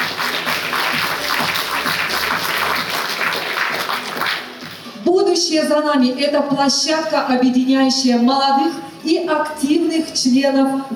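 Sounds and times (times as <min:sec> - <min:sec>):
audience applause: 0:00.0 - 0:04.8
speech: 0:05.4 - 0:10.9.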